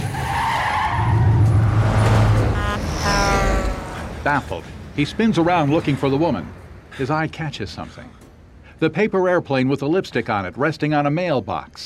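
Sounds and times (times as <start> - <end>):
sharp tire screech: 0.0 - 6.2
busy street traffic: 0.0 - 8.8
brief high tonal blare: 1.6 - 4.6
speech: 4.2 - 8.2, 8.8 - 11.8.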